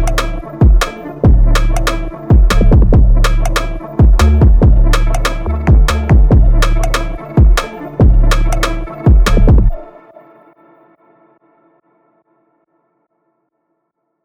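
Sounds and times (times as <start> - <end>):
142 bpm D minor beats: 0.0 - 9.9.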